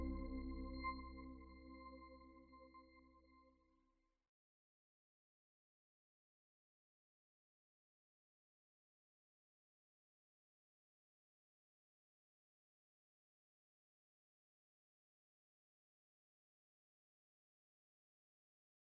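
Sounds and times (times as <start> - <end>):
cinematic logo sting: 0.0 - 2.6.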